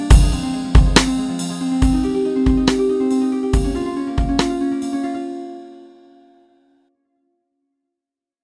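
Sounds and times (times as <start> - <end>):
harp over hip hop beat: 0.0 - 5.8.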